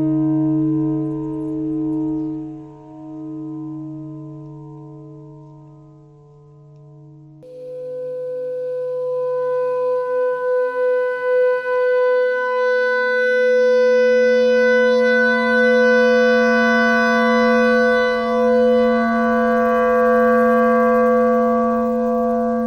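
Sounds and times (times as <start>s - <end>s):
noise: 0.0s - 22.6s
clarinet notes: 7.5s - 22.6s.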